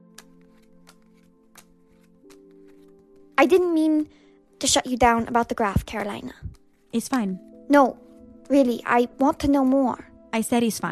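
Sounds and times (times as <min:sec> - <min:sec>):
playing cards being flipped over during a card game: 0:00.0 - 0:03.8, 0:05.8 - 0:07.4
speech: 0:03.4 - 0:10.8.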